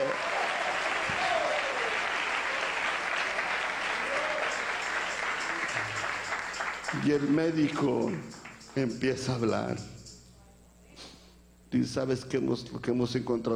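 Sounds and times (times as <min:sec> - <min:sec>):
audience applause: 0:00.0 - 0:08.7
speech: 0:07.0 - 0:09.9, 0:11.7 - 0:13.5.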